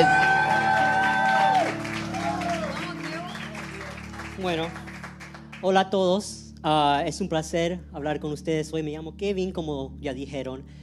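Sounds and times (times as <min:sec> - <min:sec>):
audience applause: 0:00.0 - 0:05.6
speech: 0:05.6 - 0:10.8.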